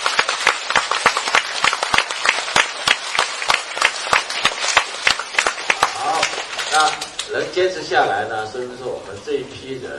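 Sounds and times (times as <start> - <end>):
audience applause: 0.0 - 7.3
speech: 6.8 - 9.9.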